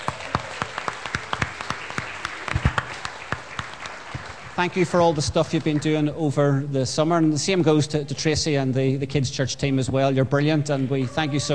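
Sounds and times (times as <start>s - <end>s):
group applause: 0.0s - 6.1s
speech: 4.6s - 11.5s.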